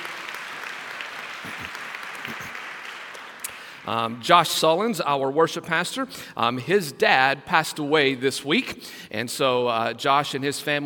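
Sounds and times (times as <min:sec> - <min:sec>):
applause: 0:00.0 - 0:03.9
speech: 0:03.9 - 0:10.8.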